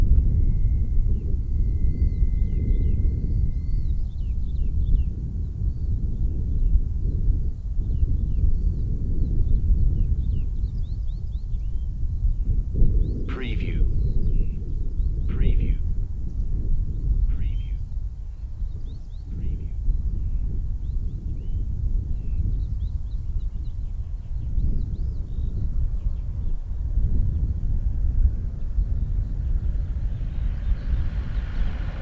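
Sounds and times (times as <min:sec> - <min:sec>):
wind: 0:00.0 - 0:32.0.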